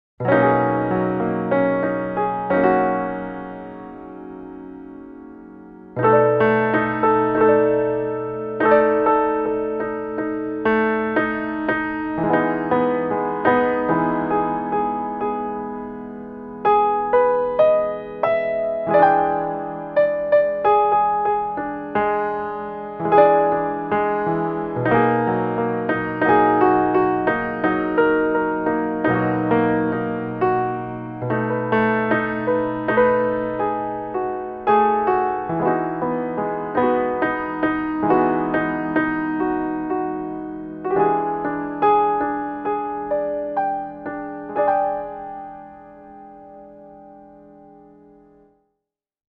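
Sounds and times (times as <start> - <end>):
solo piano: 0.2 - 48.8.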